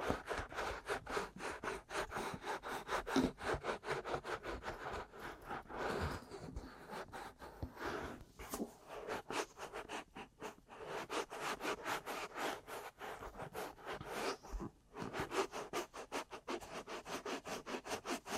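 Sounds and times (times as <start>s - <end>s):
ear massage scratchy rubbing and tapping: 0.0s - 18.3s.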